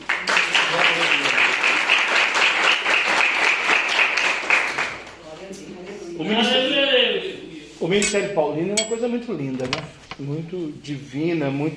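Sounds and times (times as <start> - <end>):
audience clapping: 0.0 - 5.2
speech: 6.3 - 6.5, 7.8 - 11.7.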